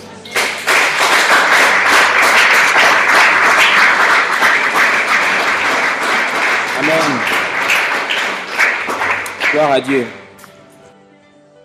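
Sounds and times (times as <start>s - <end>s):
congregation applauding during a French-language church prayer service: 0.3s - 10.4s
speech: 9.6s - 10.2s.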